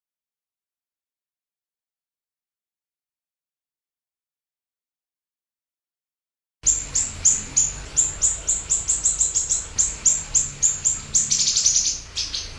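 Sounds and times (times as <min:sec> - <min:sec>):
siri-siri chirping: 0:06.6 - 0:12.5.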